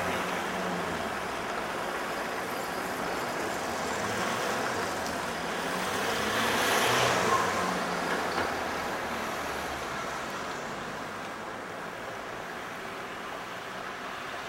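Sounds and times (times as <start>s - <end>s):
tram passing: 0.0s - 11.1s
city street corner ambience: 0.0s - 14.4s.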